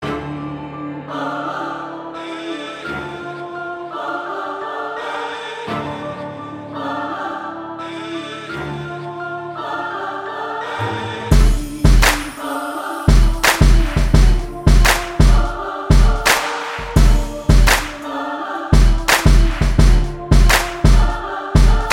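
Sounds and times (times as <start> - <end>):
instrumental music: 5.9 - 21.9.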